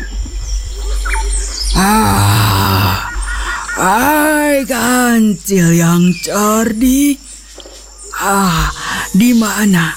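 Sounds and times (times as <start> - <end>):
tiger rumbling growl: 0.0 - 4.7
tiger roaring: 1.7 - 4.5
speech: 1.8 - 2.4, 3.8 - 7.3, 8.2 - 9.9.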